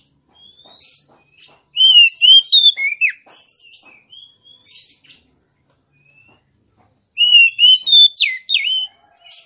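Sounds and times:
female Oriental magpie-robin singing rich whistled notes: 1.8s - 3.2s, 7.2s - 8.9s.

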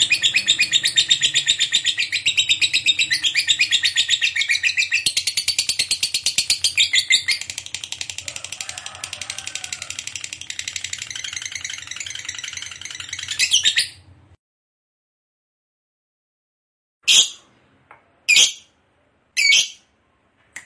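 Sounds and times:
lovebird chirps and long harsh chatter: 0.0s - 14.0s, 19.4s - 19.8s.

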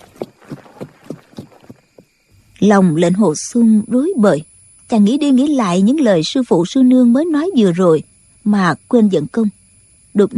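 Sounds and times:
horse hooves galloping away: 0.0s - 2.2s
speech: 2.6s - 9.6s, 10.2s - 10.3s.

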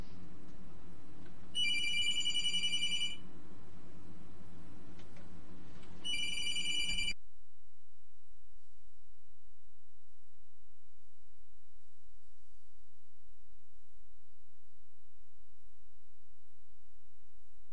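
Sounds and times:
telephone ringing with electronic trill: 1.6s - 3.2s, 6.0s - 7.2s.

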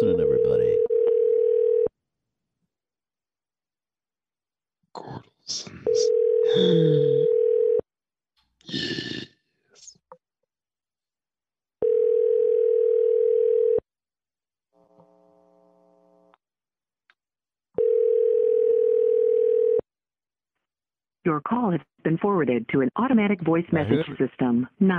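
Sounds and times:
telephone ringing through on the line: 0.3s - 1.9s, 5.9s - 6.6s, 7.2s - 7.8s, 11.8s - 13.8s, 17.8s - 19.8s
speech: 21.3s - 24.9s.

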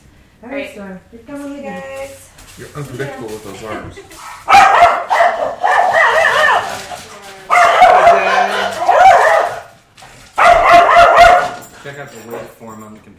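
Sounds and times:
speech: 0.4s - 4.3s, 11.9s - 13.1s
dog barking and yipping: 4.1s - 9.8s, 10.4s - 11.8s.

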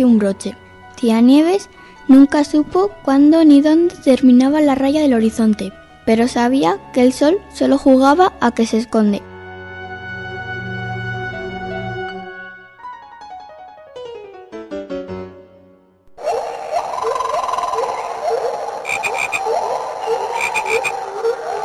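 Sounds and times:
speech: 0.0s - 9.3s
green toad croaking: 16.2s - 21.6s.

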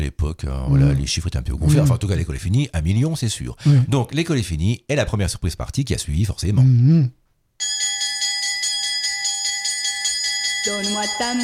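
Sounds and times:
speech: 0.0s - 7.2s, 10.6s - 11.4s
electric school bell ringing: 7.6s - 11.4s.

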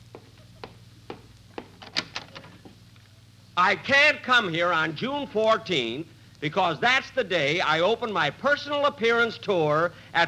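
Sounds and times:
waiting room door opening: 1.6s - 2.7s
speech: 3.6s - 10.2s.

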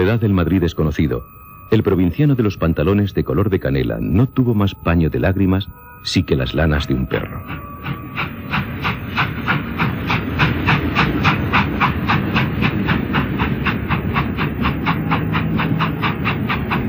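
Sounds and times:
train carriage rolling on rails: 0.0s - 16.8s
speech: 0.1s - 8.3s
wheels clickety-clack: 6.8s - 16.8s.

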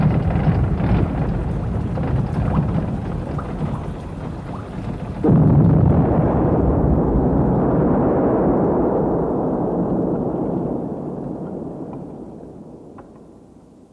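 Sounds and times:
thrown bomb exploding: 0.0s - 13.5s.

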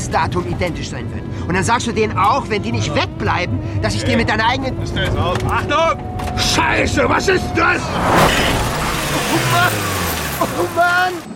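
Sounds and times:
speech: 0.1s - 11.3s
car crashing and overturning over a clearing: 7.8s - 11.3s.

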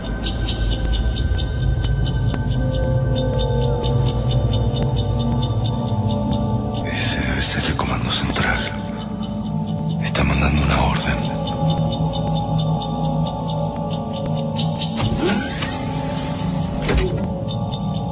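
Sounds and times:
steady electric humming drone in a science-fiction radio drama: 0.0s - 18.1s
mechanical hatch opening with sliding clanking bursts in a science-fiction radio drama: 15.0s - 17.4s.

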